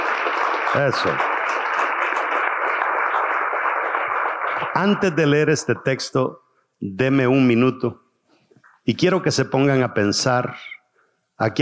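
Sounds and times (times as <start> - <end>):
audience applause: 0.0 - 5.4
speech: 0.7 - 1.3, 4.8 - 8.0, 8.8 - 10.7, 11.4 - 11.5.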